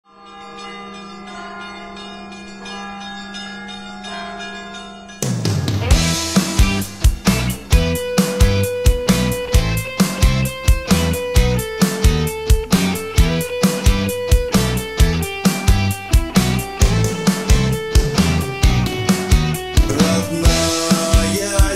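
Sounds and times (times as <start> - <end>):
AI-generated cover song: 5.2 - 21.7.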